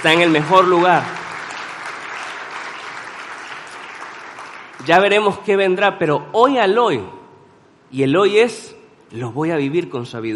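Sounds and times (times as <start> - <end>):
speech: 0.0 - 1.2, 4.8 - 7.2, 7.9 - 10.3
audience applauding: 0.0 - 5.1.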